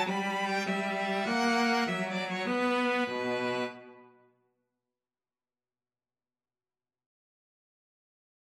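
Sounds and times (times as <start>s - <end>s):
string quartet playing in a hall: 0.0s - 4.0s.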